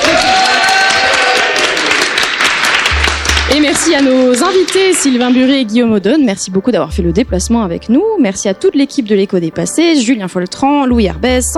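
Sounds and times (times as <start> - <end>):
audience applause: 0.0 - 5.5
speech: 3.7 - 11.5.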